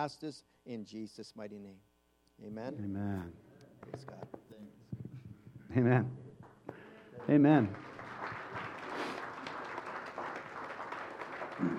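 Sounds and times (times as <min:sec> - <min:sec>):
speech: 0:00.0 - 0:04.8, 0:05.7 - 0:06.2, 0:07.2 - 0:07.9, 0:11.6 - 0:11.7
audience clapping: 0:06.4 - 0:11.7.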